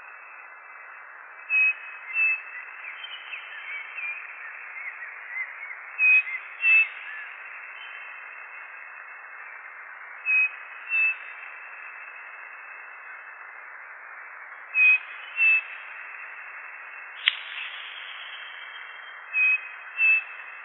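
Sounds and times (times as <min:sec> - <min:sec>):
constant hiss: 0:00.0 - 0:20.6
high bird whistles: 0:14.8 - 0:15.6, 0:17.2 - 0:20.4
sharp click: 0:17.2 - 0:18.0.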